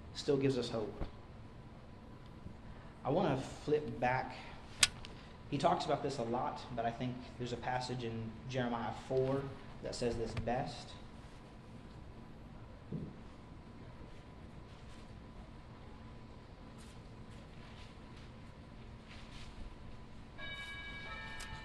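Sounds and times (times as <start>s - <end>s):
speech: 0.2s - 1.2s, 3.0s - 4.8s, 5.5s - 11.0s
bell ringing: 20.4s - 21.6s.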